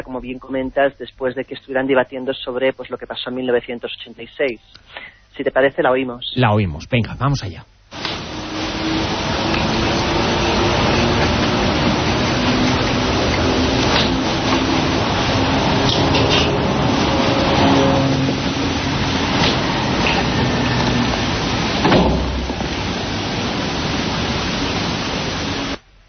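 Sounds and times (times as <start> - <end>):
speech: 0.0 - 7.7
airplane diving: 8.0 - 25.8.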